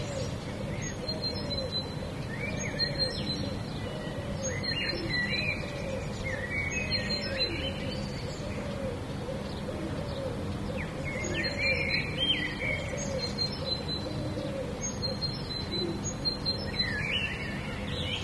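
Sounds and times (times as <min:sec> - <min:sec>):
birds: 0:00.0 - 0:18.2.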